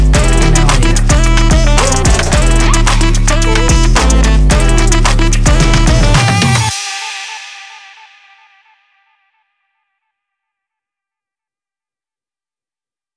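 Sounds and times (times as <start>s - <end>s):
saxophone: 0.0s - 9.2s.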